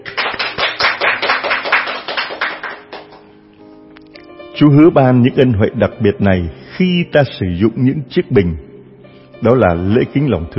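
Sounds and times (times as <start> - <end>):
audience round of applause: 0.0 - 3.2
speech: 4.6 - 8.7, 9.4 - 10.5.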